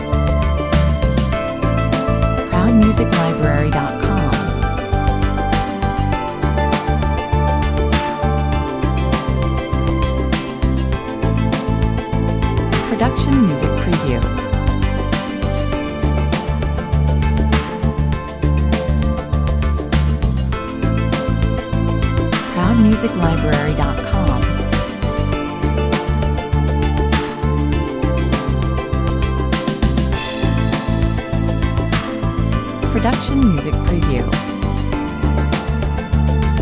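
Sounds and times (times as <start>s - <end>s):
drum and bass music at 100 bpm: 0.0s - 36.6s.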